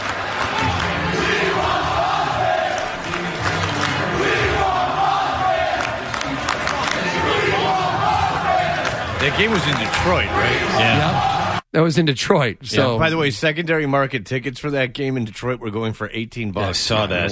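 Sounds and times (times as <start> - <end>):
basketball fans cheering in arena: 0.0 - 11.6
speech: 9.3 - 17.3.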